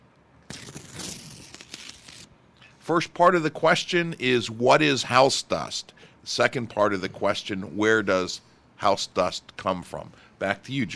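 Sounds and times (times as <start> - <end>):
envelope being opened: 0.4 - 2.3
speech: 2.9 - 10.9.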